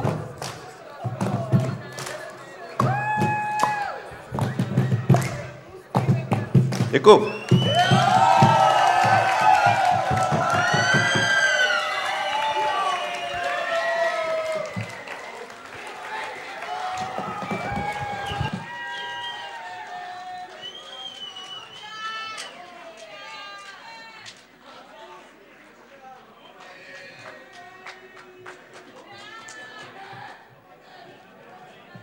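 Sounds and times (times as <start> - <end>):
crowd clapping: 0.0 - 30.5
crowd cheering with whoops and shouts: 2.8 - 5.5, 7.3 - 24.0
speech: 6.9 - 7.9.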